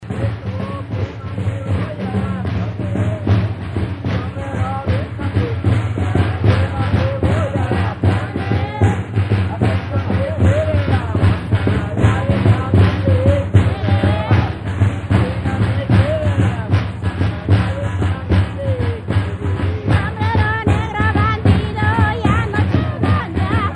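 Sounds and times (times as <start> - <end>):
snare drum: 0.0 - 23.7.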